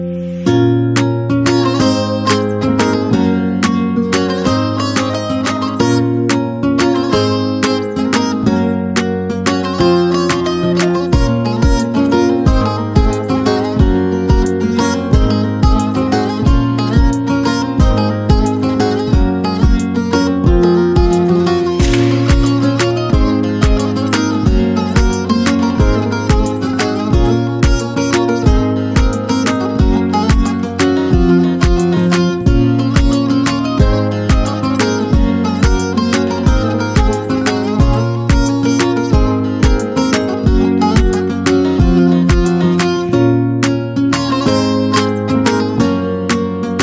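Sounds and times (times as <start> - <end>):
saz over a summer trap beat: 0.2 - 46.8.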